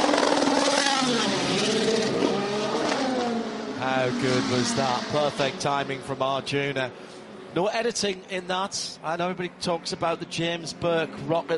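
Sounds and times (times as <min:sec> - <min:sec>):
Aston Martin Valkyrie V12 race car engine screaming past: 0:00.0 - 0:06.2
speech: 0:04.0 - 0:11.5.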